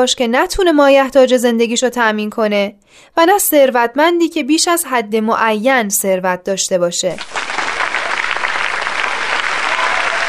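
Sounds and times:
speech: 0:00.0 - 0:07.8
audience applause at a religious talk: 0:07.2 - 0:10.2.

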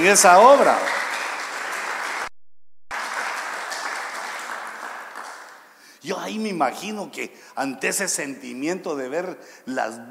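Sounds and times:
speech: 0:00.0 - 0:01.0, 0:06.3 - 0:10.1
audience applause: 0:00.0 - 0:02.3, 0:02.9 - 0:05.7.

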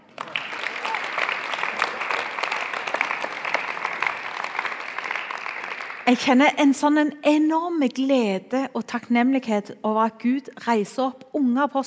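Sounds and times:
applause: 0:00.0 - 0:06.4
speech: 0:06.1 - 0:11.8.

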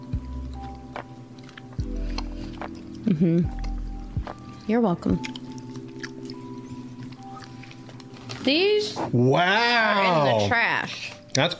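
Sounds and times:
moist chewing of a chewy candy likened to a fancy Tootsie Roll: 0:00.4 - 0:08.5
speech: 0:03.1 - 0:03.6, 0:04.7 - 0:05.4, 0:08.4 - 0:11.5.

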